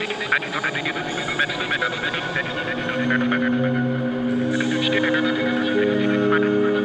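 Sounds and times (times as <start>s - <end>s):
techno vocals at 140 BPM: 0.0s - 6.8s.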